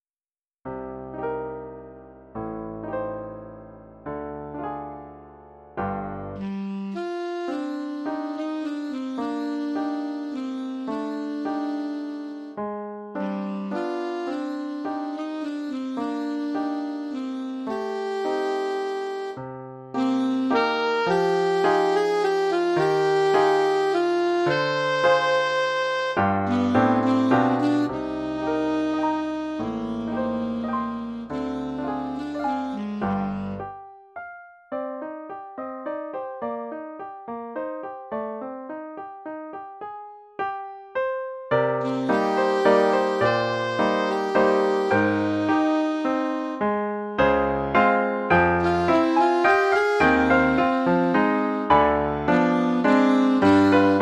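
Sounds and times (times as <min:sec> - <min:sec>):
piano: 0:00.7 - 0:53.9
alto saxophone: 0:06.2 - 0:12.6, 0:13.2 - 0:33.8, 0:41.6 - 0:53.9.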